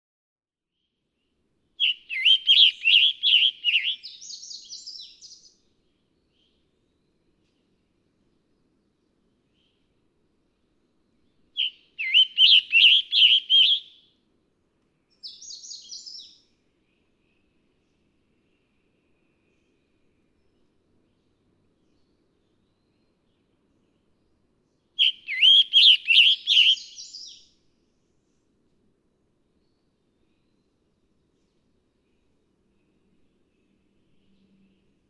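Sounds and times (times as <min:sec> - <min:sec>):
scarlet tanager song: 0:01.8 - 0:05.6, 0:11.6 - 0:14.0, 0:15.2 - 0:16.5, 0:25.0 - 0:27.5.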